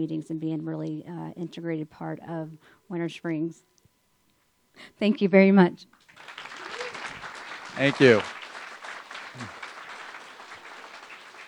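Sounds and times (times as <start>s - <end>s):
speech: 0.0s - 3.7s, 4.8s - 6.4s, 7.8s - 8.4s, 9.4s - 9.6s
audience applause: 6.1s - 11.4s.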